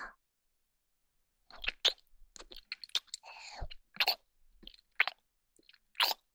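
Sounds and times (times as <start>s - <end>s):
nipple licking: 1.6s - 6.2s.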